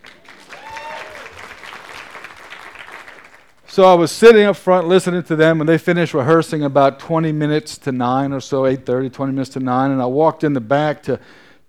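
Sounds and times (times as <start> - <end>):
crowd applauding for the band: 0.0 - 3.7
speech: 3.7 - 11.6.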